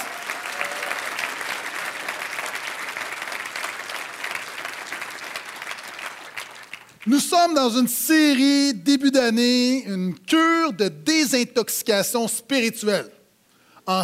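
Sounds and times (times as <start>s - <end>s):
crowd applauding in support: 0.0s - 7.2s
speech: 7.0s - 13.2s.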